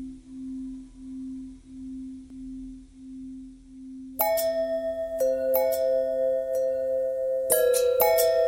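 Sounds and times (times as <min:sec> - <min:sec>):
long bell ringing: 0:04.2 - 0:08.4.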